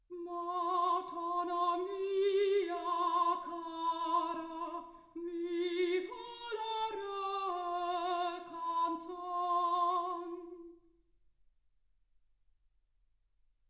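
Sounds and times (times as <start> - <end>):
soprano singing: 0.1 - 10.8.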